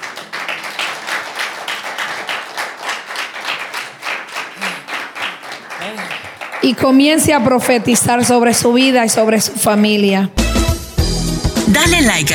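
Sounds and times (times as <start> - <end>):
audience applause: 0.0 - 7.6
speech: 5.9 - 10.4, 11.8 - 12.3.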